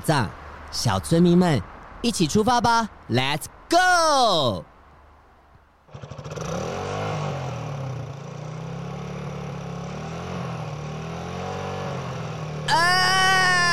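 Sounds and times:
speech: 0.0 - 4.7
heavy motorcycle engine roaring: 5.9 - 13.7.

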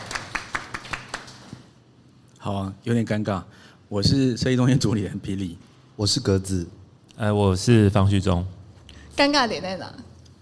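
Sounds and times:
applause: 0.0 - 1.7
speech: 2.4 - 8.6, 9.2 - 10.1.

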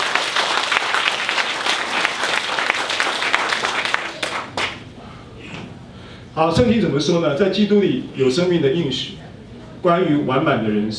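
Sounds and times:
audience applauding: 0.0 - 4.8
speech: 6.4 - 9.2, 9.8 - 10.9.

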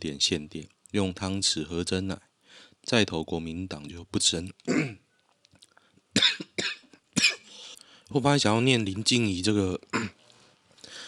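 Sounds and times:
speech: 0.0 - 5.0, 8.1 - 10.2
harsh loud coughing fit: 4.7 - 5.0, 6.2 - 7.5, 9.9 - 10.2.

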